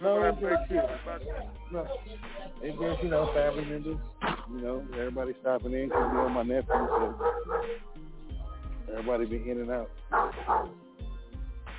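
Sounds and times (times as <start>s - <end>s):
speech: 0.0s - 8.0s, 8.9s - 11.1s
dog barking: 5.8s - 8.0s, 10.1s - 10.8s.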